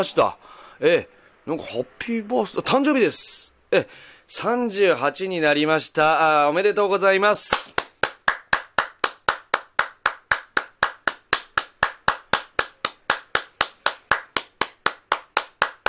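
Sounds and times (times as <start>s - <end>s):
speech: 0.0s - 7.8s
hand clapping: 7.4s - 15.8s.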